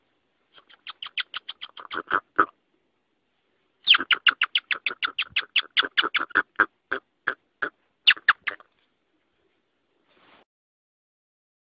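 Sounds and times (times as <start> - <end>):
rock hyrax chirping calls: 0.5 - 2.5, 3.8 - 8.7.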